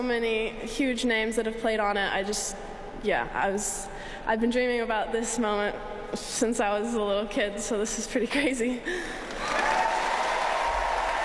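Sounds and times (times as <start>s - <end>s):
speech: 0.0s - 9.6s
tennis crowd roaring and applauding: 9.3s - 11.2s.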